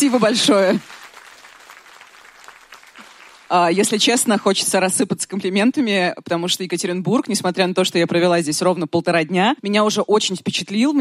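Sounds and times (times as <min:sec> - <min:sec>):
speech: 0:00.0 - 0:01.0, 0:03.5 - 0:10.9
audience applause: 0:00.0 - 0:04.1.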